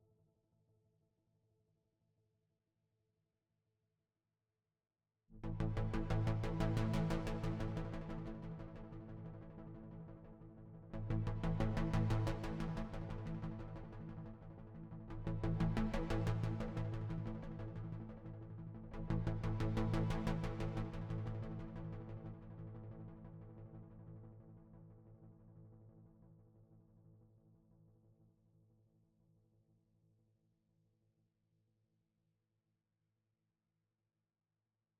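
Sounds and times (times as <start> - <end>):
bass: 5.4 - 24.6.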